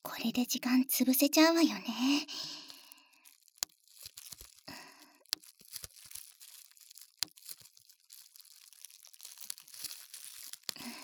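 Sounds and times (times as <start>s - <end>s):
speech: 0.2s - 2.6s
bubble wrap plastic crinkling: 1.6s - 11.0s
bubble wrap packing material popping: 2.3s - 11.0s.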